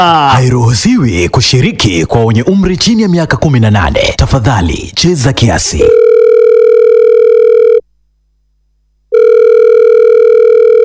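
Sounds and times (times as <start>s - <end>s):
speech: 0.0s - 6.1s
telephone ringing: 5.9s - 7.8s, 9.1s - 10.8s.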